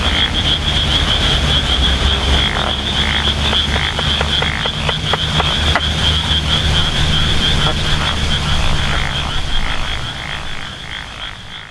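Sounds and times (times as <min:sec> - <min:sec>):
Japanese wrinkled frog croaking: 0:00.0 - 0:11.6
low hum: 0:00.0 - 0:11.6
steady high whine: 0:00.0 - 0:11.6.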